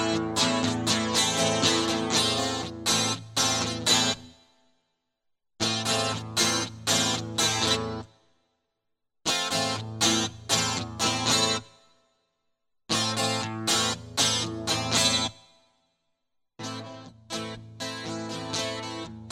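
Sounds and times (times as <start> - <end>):
guitar loop: 0.0 - 4.3, 5.6 - 8.1, 9.3 - 11.6, 12.9 - 15.4, 16.6 - 19.3.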